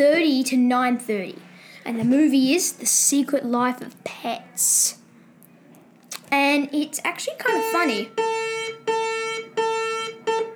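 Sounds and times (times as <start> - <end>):
speech: 0.0 - 5.0, 6.3 - 8.4
electronic school bell ringing: 7.5 - 10.5.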